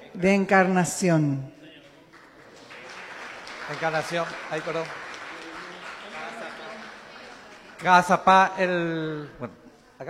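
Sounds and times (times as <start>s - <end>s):
speech: 0.2s - 1.6s, 3.7s - 5.0s, 7.8s - 10.0s
audience applause: 2.1s - 8.5s.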